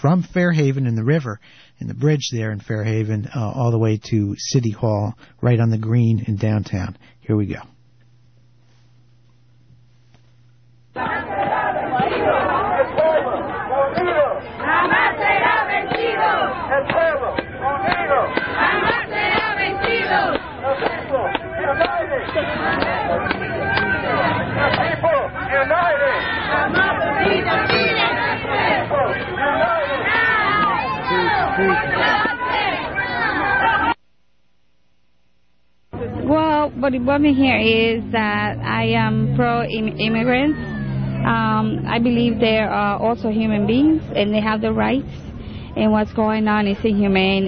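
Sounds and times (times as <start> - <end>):
speech: 0.0 - 7.7, 11.0 - 11.2, 36.8 - 47.4
protest march crowd shouting and chanting: 10.9 - 34.0, 35.9 - 47.4.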